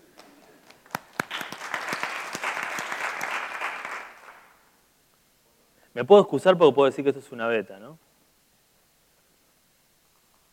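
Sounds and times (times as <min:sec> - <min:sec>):
applause: 0:00.2 - 0:04.7
speech: 0:06.0 - 0:08.1.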